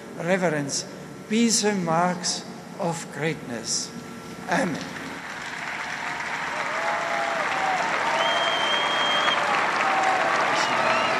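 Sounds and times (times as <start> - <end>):
speech: 0.2 - 5.0
large audience applause: 5.1 - 11.1
whistles: 8.1 - 9.5, 10.5 - 11.1.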